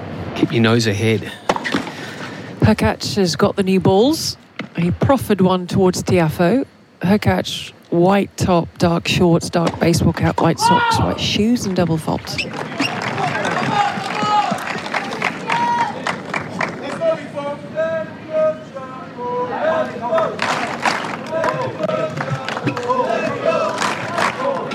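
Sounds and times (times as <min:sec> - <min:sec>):
speech: 0:00.4 - 0:01.4, 0:02.6 - 0:12.7
tennis crowd clapping: 0:12.5 - 0:17.1, 0:20.1 - 0:24.7
tennis crowd chanting: 0:12.5 - 0:24.7.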